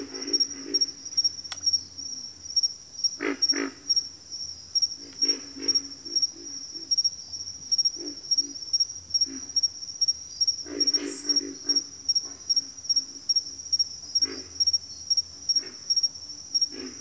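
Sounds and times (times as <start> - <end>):
pig frogs calling in a bayou: 0.0 - 1.8, 3.1 - 4.2, 4.8 - 7.1, 7.7 - 9.8, 10.5 - 16.9.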